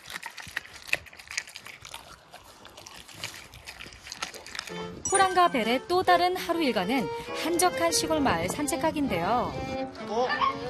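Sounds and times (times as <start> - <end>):
dog chewing and crunching raw chicken bones: 0.0 - 6.1
speech: 4.7 - 10.6.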